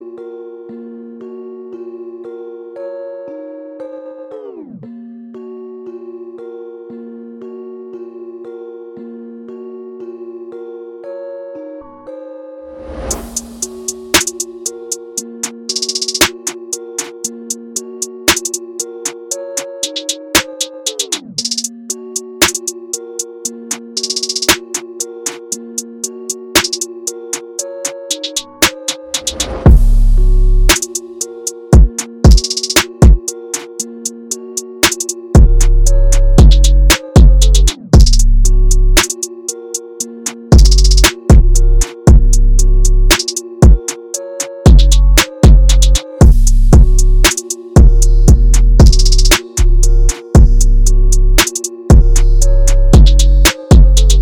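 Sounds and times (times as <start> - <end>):
trap beats: 13.2 - 54.2.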